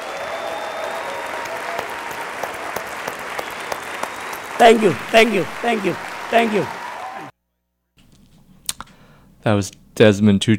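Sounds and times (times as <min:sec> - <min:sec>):
audience applause: 0:00.0 - 0:07.3
crowd cheering: 0:00.0 - 0:07.4
speech: 0:04.6 - 0:06.8, 0:09.4 - 0:10.5.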